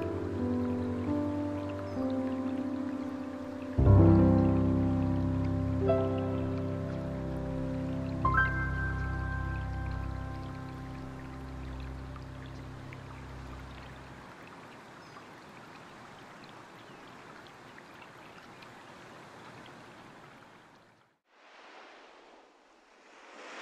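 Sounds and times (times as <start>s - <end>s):
relaxing instrumental piano music: 0.0s - 14.2s.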